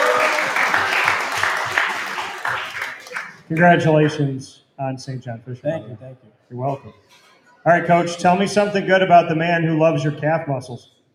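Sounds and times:
audience applause: 0.0 - 4.1
speech: 3.5 - 11.0.

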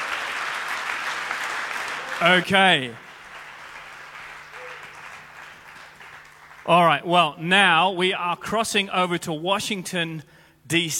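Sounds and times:
audience applause: 0.0 - 6.9
speech: 2.2 - 3.1, 6.7 - 10.9.

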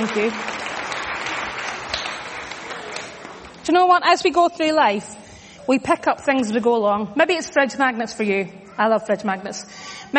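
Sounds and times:
speech: 0.0 - 0.6, 3.7 - 10.1
audience applause for volunteer helpers: 0.0 - 3.6.

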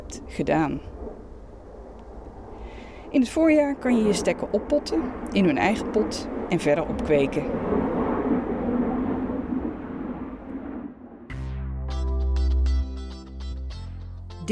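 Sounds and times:
loud airplane flying over a garden: 0.0 - 12.8
speech: 0.1 - 0.9, 3.1 - 7.7
bright musical passage with sustained tones: 11.3 - 14.5.

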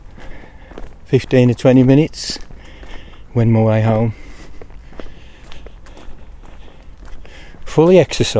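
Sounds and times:
footsteps on a fast walk toward a city centre: 0.0 - 8.3
speech: 1.1 - 2.5, 3.4 - 4.2, 7.8 - 8.3.

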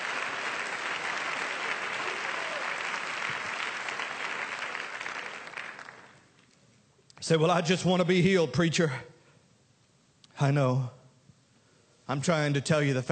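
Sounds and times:
audience clapping hands: 0.0 - 6.6
speech: 7.3 - 9.1, 10.4 - 11.0, 12.1 - 13.0.

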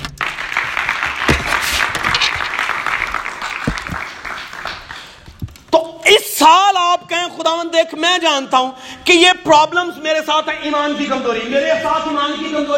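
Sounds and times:
audience applauding: 0.0 - 5.7
speech: 6.4 - 12.7.

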